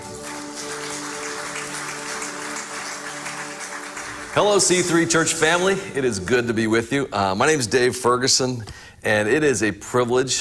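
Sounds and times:
crowd applause: 0.0s - 6.0s
speech: 4.4s - 10.3s.

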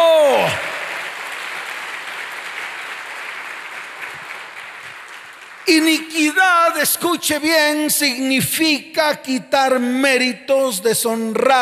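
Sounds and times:
audience applause: 0.0s - 6.0s
speech: 5.7s - 11.5s.

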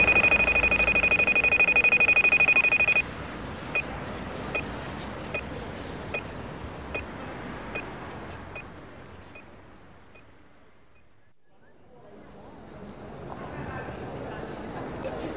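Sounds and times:
pedestrian crossing signal beeping: 0.0s - 3.1s, 3.7s - 3.9s, 4.5s - 4.7s, 7.7s - 8.7s, 9.3s - 11.3s.

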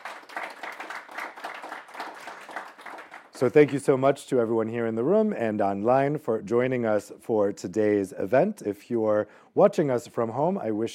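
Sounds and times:
audience applause for panelists: 0.0s - 3.4s
speech: 3.4s - 10.9s.

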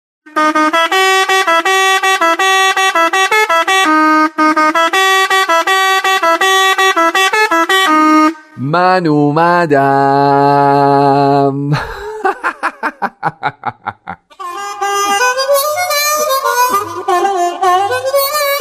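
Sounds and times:
hand horn honking: 0.3s - 8.6s, 14.3s - 18.5s
speech: 9.0s - 11.9s
laughter: 11.7s - 14.3s, 16.7s - 18.2s.

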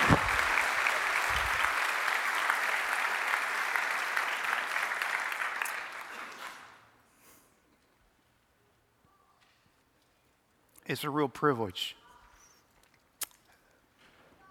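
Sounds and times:
audience applause welcoming a speaker to the stage: 0.0s - 6.8s
speech: 10.9s - 12.0s.

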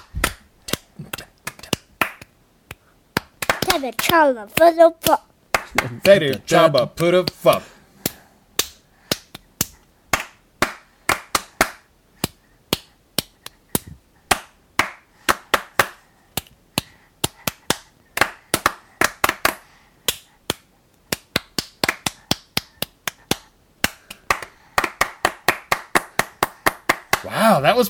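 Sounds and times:
rhythmic hand clapping from several people: 0.0s - 27.4s
speech: 3.7s - 7.7s.

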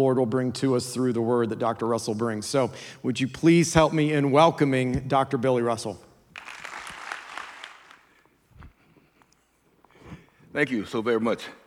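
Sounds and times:
speech: 0.0s - 6.1s, 10.6s - 11.6s
audience applause: 6.4s - 8.2s.

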